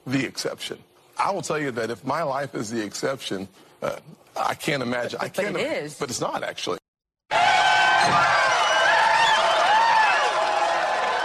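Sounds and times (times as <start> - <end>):
speech: 0.1 - 6.8
audience cheering: 7.3 - 11.2.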